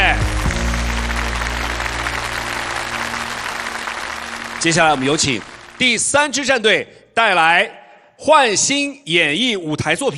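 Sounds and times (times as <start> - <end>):
low sustained musical drone: 0.0 - 6.1
audience applause: 0.0 - 6.2
speech: 4.6 - 10.1.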